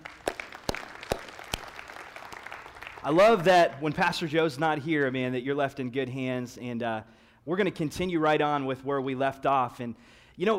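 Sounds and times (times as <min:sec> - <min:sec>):
audience applause: 0:00.0 - 0:03.8
speech: 0:03.0 - 0:10.5.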